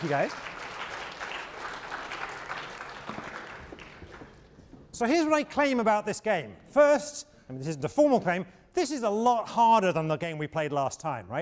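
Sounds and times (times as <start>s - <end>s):
speech: 0.0s - 0.5s, 5.0s - 11.4s
audience applause: 0.0s - 4.5s.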